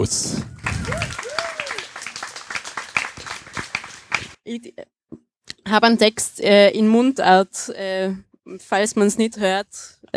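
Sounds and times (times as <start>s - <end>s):
speech: 0.0s - 0.4s, 4.5s - 4.8s, 5.7s - 10.1s
audience applause: 0.4s - 4.4s.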